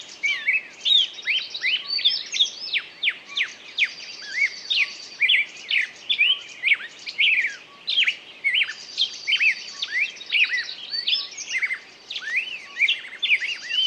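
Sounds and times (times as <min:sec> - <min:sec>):
birds singing in chorus: 0:00.0 - 0:13.8.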